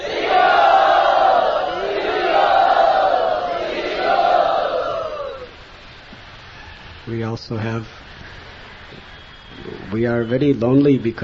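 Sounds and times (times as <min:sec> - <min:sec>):
crowd chanting in unison to welcome a guest at a Pune Yatra gathering: 0:00.0 - 0:05.6
speech: 0:07.3 - 0:08.4, 0:09.9 - 0:11.2.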